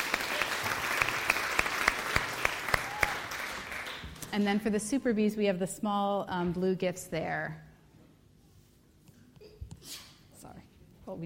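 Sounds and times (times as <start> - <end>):
audience applauding: 0.0 - 4.4
speech: 4.3 - 7.7.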